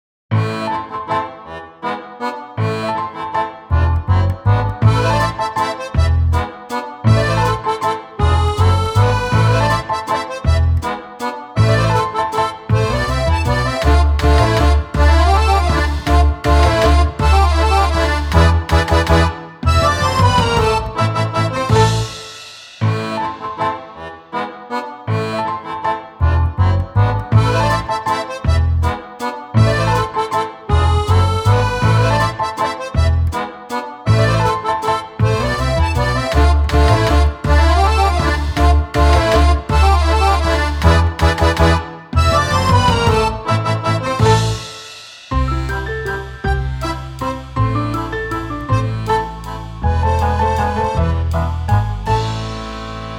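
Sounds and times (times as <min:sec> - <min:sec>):
instrumental polka: 0:00.3 - 0:53.1.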